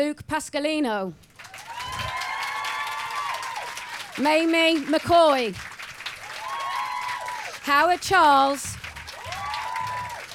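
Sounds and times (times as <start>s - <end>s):
speech: 0.0s - 1.5s, 4.2s - 5.7s, 7.6s - 8.8s
audience cheering: 1.4s - 4.8s, 6.0s - 10.3s
audience applause: 1.4s - 10.3s.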